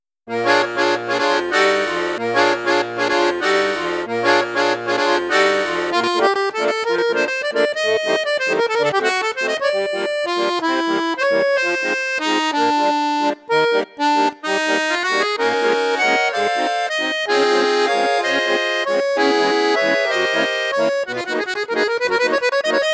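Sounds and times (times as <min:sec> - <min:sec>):
accordion with in-tune flute register: 0:00.3 - 0:22.9.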